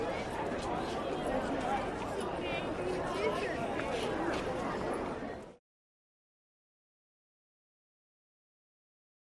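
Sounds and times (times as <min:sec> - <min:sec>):
school hallway bustle between classes: 0:00.0 - 0:05.6.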